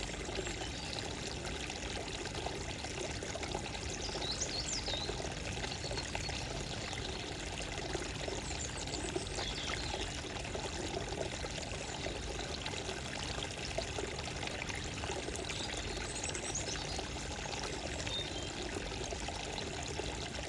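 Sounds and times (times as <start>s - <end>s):
calming morning water: 0.0s - 20.4s
birds: 3.5s - 12.6s, 14.5s - 20.2s.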